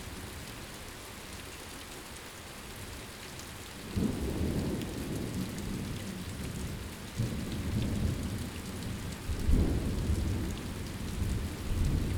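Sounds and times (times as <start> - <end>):
thunderstorm: 3.9 - 12.1.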